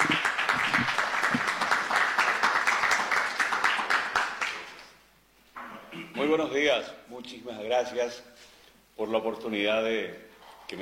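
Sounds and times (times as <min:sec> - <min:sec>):
audience applause: 0:00.0 - 0:04.9
speech: 0:06.3 - 0:08.4, 0:09.0 - 0:10.7.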